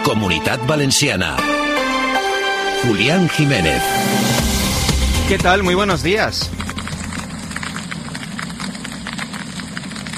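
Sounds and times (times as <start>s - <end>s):
speech: 0.1s - 2.2s, 2.8s - 4.5s, 5.3s - 6.6s
low rumble: 3.8s - 10.1s
golf-ball-sized hailstones striking hard surfaces: 5.4s - 10.1s.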